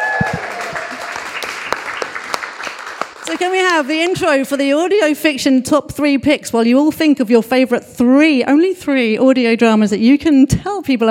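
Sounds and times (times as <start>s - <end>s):
audience applause: 0.0s - 4.1s
speech: 3.4s - 11.0s.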